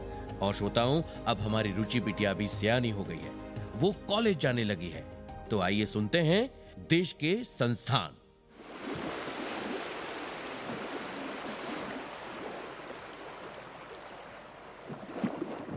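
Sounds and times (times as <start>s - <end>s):
speech: 0.4s - 8.2s
sea waves at the shore: 8.6s - 15.7s.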